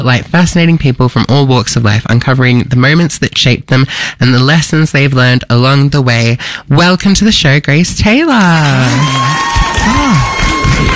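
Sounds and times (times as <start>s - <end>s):
speech: 0.0s - 10.2s
live studio audience cheering and whooping at a talk show: 8.7s - 10.9s.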